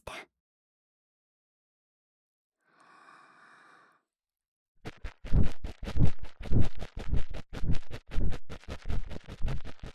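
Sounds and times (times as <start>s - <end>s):
fast shallow ear cleaning on the left in ASMR: 4.9s - 9.9s.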